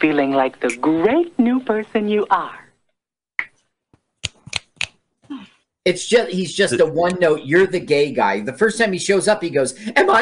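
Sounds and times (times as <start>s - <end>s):
speech: 0.0s - 2.6s, 5.8s - 10.2s
finger snaps: 4.2s - 5.0s.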